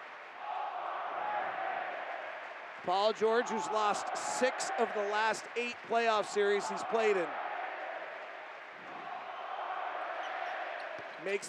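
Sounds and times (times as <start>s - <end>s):
arena crowd chanting: 0.4s - 5.4s, 6.3s - 11.1s
speech: 2.8s - 7.4s, 11.2s - 11.4s.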